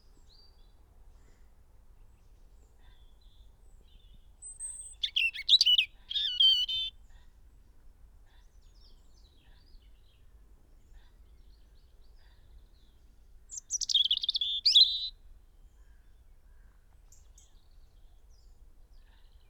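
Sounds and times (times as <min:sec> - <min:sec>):
European robin singing: 0:04.0 - 0:07.0, 0:13.5 - 0:15.2.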